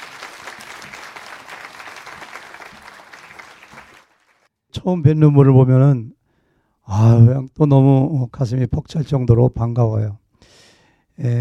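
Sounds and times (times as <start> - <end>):
audience applause: 0.0 - 4.5
speech: 4.8 - 6.2, 6.9 - 10.2, 11.2 - 11.4.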